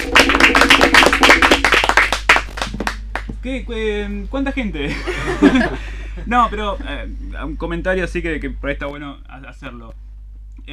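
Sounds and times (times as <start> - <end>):
audience applause: 0.0 - 3.3
speech: 3.4 - 10.0
laughter: 4.8 - 7.0.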